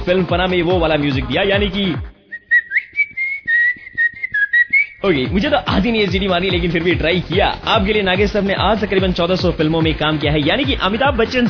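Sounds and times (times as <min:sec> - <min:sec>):
speech: 0:00.0 - 0:02.1, 0:05.0 - 0:11.4
person whistling a tune: 0:02.3 - 0:05.2.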